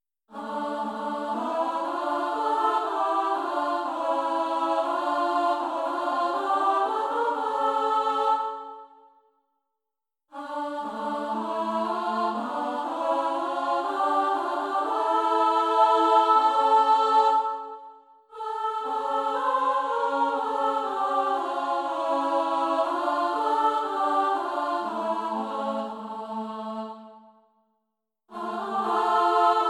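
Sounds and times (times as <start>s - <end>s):
soprano and alto singing: 0.3s - 8.9s, 10.4s - 27.2s, 28.3s - 29.6s.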